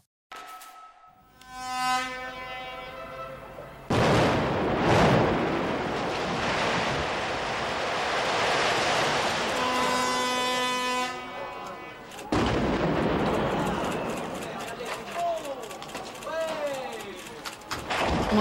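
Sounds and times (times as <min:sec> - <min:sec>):
warning horn: 0:00.6 - 0:03.9, 0:09.5 - 0:12.2
explosive blast from a chimney demolition: 0:03.9 - 0:09.5, 0:12.3 - 0:14.3
roaring rumble of chimney collapse: 0:03.9 - 0:10.2, 0:12.3 - 0:16.4
crowd voices: 0:13.0 - 0:18.4.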